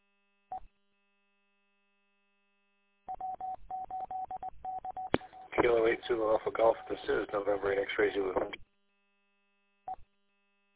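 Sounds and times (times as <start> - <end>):
beep on radio echo link: 3.9 - 8.6
speech: 5.7 - 8.7.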